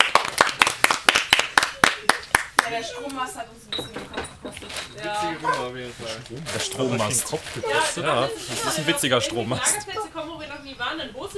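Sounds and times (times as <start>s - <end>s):
few people clapping: 0.0s - 2.8s
speech: 2.7s - 11.3s.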